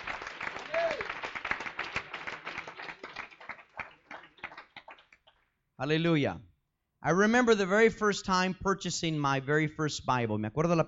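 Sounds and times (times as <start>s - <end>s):
audience clapping hands: 0.0s - 5.6s
speech: 5.8s - 10.8s.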